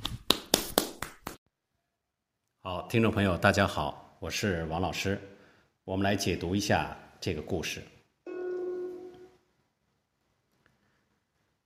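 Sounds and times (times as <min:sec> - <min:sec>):
audience applause: 0:00.0 - 0:01.4
speech: 0:02.7 - 0:08.0.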